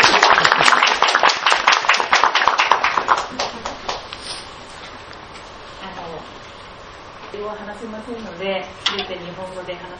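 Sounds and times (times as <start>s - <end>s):
audience clapping: 0.0s - 4.2s
speech: 7.5s - 9.9s.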